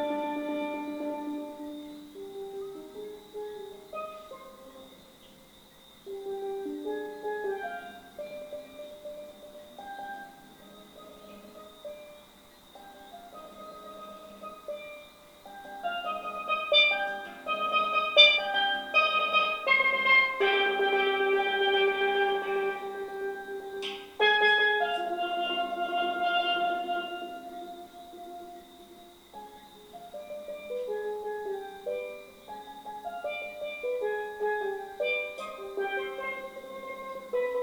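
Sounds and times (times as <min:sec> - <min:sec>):
steel drum from Trinidad and Tobago playing classical music: 0:00.0 - 0:37.6.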